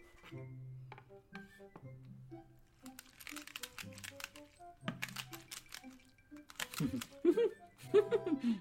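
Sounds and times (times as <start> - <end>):
strawberries being crushed: 2.7 - 7.3
person chuckling: 6.6 - 8.5.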